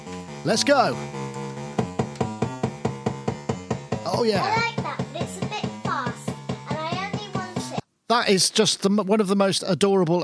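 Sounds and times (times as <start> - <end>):
electronic bass drum triggered by clock pulse: 0.0 - 7.8
speech: 0.4 - 1.2, 4.2 - 4.7, 8.1 - 10.2.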